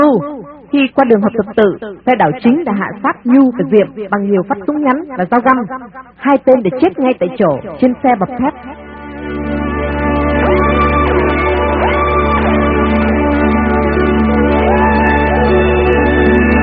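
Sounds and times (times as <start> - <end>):
speech: 0.2 - 9.6
crowd of cadres cheering in a courtyard: 10.4 - 16.5.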